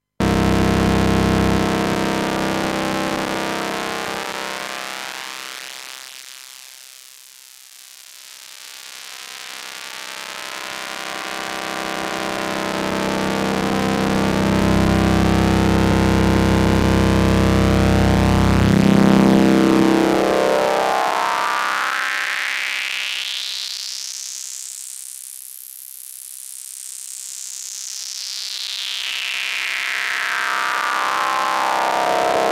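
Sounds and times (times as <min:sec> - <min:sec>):
high-pass filter sweep: 0:00.2 - 0:05.9, 0:10.0 - 0:23.0, 0:29.0 - 0:32.5.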